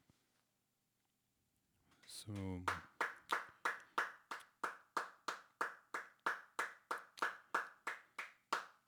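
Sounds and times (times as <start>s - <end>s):
speech: 2.2s - 2.9s
Paris studio audience applause: 2.7s - 8.8s.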